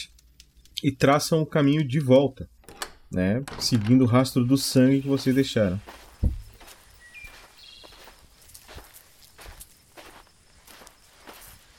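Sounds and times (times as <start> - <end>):
speech: 0.8 - 6.3
footsteps crunching: 4.6 - 11.7.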